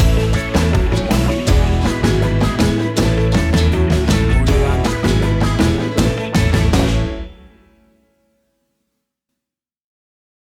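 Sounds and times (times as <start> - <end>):
calypso summer groove: 0.0 - 7.6.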